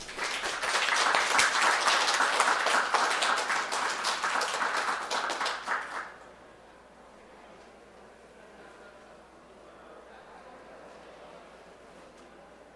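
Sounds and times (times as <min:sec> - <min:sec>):
audience applause: 0:00.0 - 0:06.2.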